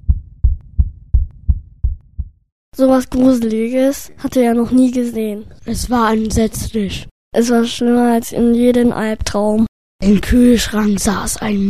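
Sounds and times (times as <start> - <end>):
heartbeat: 0.0 - 2.5
speech: 2.8 - 11.6.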